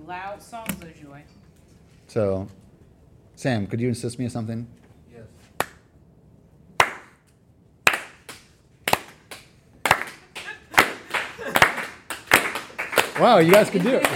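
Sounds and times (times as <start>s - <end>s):
speech: 0.1s - 1.4s, 2.1s - 2.6s, 3.4s - 5.3s, 13.2s - 14.1s
audience clapping during worship: 6.8s - 7.2s, 7.8s - 14.1s.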